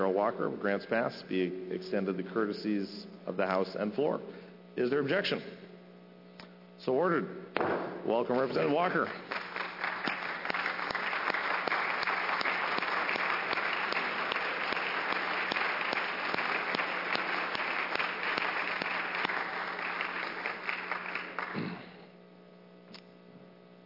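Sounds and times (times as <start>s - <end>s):
speech: 0.0s - 5.6s, 6.8s - 9.4s
applause in legislative chamber: 8.3s - 22.0s.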